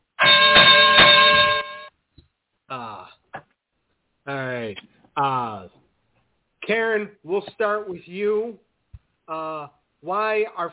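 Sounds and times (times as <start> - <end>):
bell ringing: 0.2 - 1.9
speech: 6.7 - 8.6, 9.3 - 10.7.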